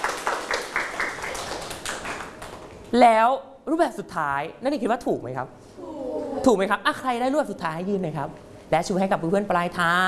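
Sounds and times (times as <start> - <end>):
students clapping for themselves: 0.0 - 2.7
speech: 2.9 - 5.8, 6.4 - 10.0.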